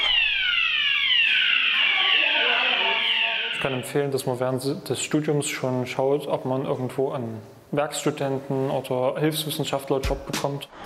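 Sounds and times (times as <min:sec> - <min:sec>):
fire alarm ringing: 0:00.0 - 0:04.0
speech: 0:03.6 - 0:10.8.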